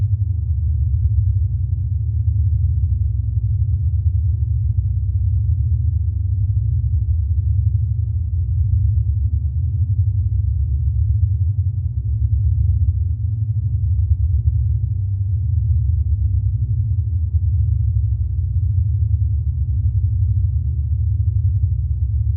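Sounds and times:
large science fiction carrier spaceship rumble: 0.0 - 22.3.

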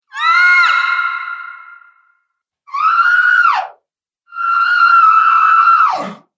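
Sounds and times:
female monster screams: 0.1 - 2.0, 2.7 - 3.7, 4.3 - 6.2.

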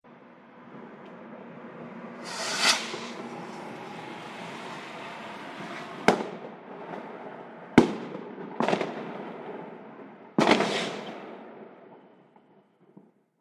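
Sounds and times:
car passing: 0.4 - 7.7
firework rocket launching: 1.9 - 6.6, 10.5 - 11.1.

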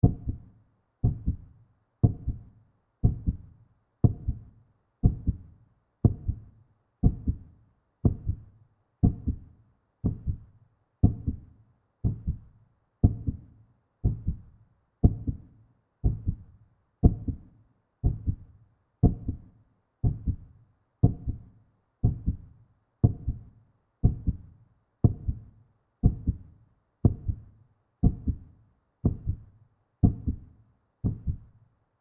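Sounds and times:
zombie heartbeat: 0.0 - 31.6.

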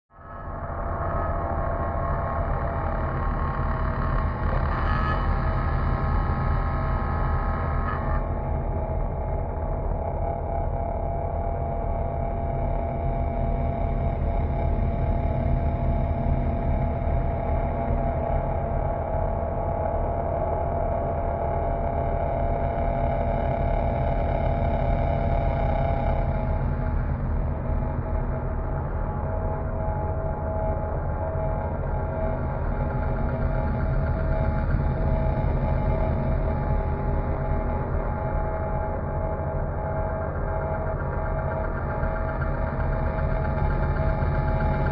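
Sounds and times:
drone: 0.1 - 44.9.

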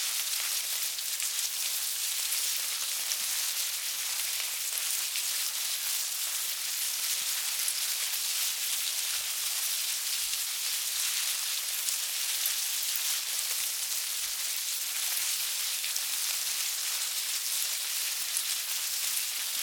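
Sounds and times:
bugs crawling in a hive: 0.0 - 19.6.

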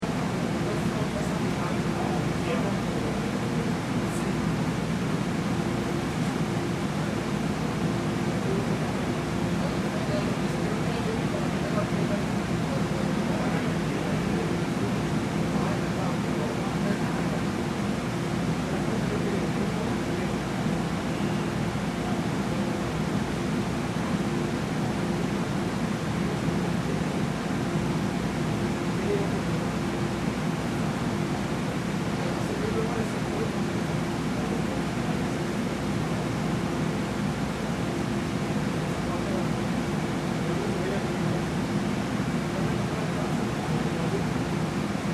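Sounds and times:
faint voices: 0.0 - 45.1
stationary subway train interior room tone: 0.0 - 45.1.

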